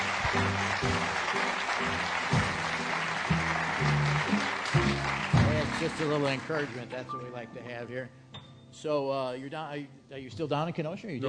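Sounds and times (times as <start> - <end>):
audience applause: 0.0 - 7.1
speech: 5.8 - 8.2, 8.8 - 11.2.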